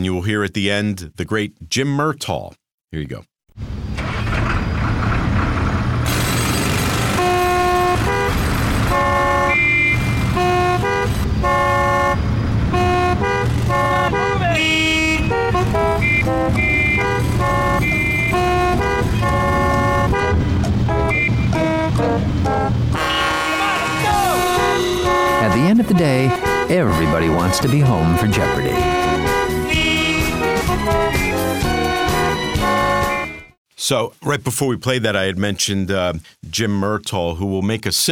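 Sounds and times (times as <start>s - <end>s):
speech: 0.0s - 3.7s, 25.9s - 29.2s, 33.8s - 38.1s
low traffic rumble: 3.6s - 33.0s
car horns honking in heavy traffic for a TV promo spot: 6.2s - 33.5s.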